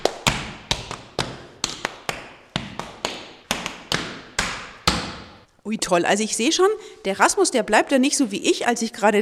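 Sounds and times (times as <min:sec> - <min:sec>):
tap dance steps clattering: 0:00.0 - 0:05.5
speech: 0:05.7 - 0:09.2.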